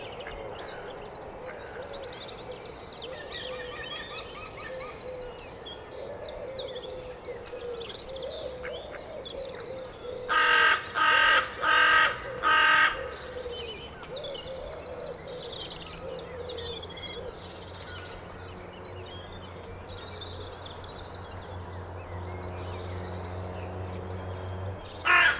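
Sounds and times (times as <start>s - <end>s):
carrion crow Corvus corone giving loud harsh even caws: 10.3s - 13.4s, 25.0s - 25.3s.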